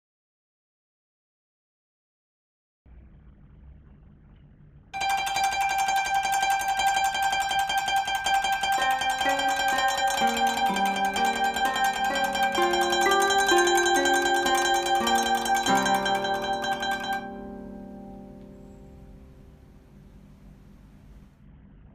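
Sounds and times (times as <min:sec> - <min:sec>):
koto: 0:05.0 - 0:21.1.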